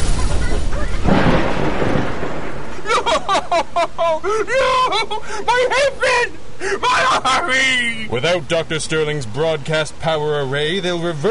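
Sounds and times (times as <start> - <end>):
explosion of detonated charges: 0.0 - 3.3
laughter: 2.7 - 8.1
speech: 4.2 - 11.2.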